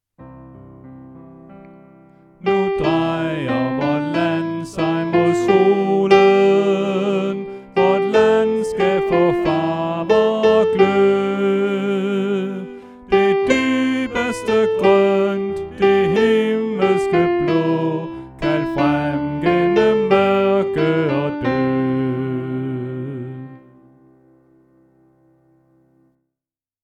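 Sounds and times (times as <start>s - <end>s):
soprano voice: 2.4s - 23.8s.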